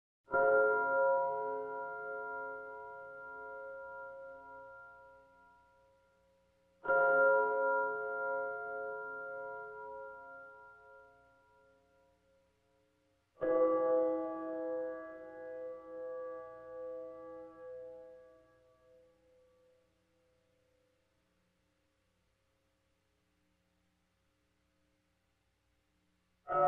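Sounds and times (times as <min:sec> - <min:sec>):
mysterious bells: 0:00.3 - 0:12.1, 0:13.4 - 0:19.3, 0:26.5 - 0:26.6.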